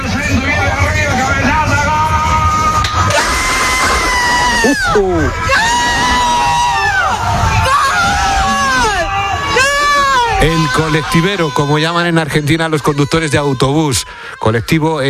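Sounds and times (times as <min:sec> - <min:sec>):
bus passengers cheering a goal: 0:00.0 - 0:15.0
speech: 0:04.6 - 0:05.6, 0:10.4 - 0:15.0.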